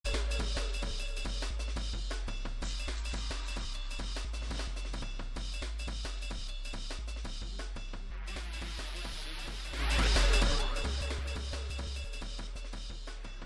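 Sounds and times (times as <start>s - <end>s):
UK drum and bass jungle music: 0.0s - 13.4s.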